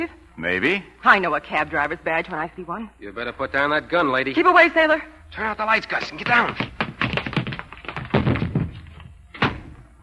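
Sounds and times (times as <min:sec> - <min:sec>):
speech: 0:00.0 - 0:06.8
person tripping over their own feet and falling: 0:05.9 - 0:09.9.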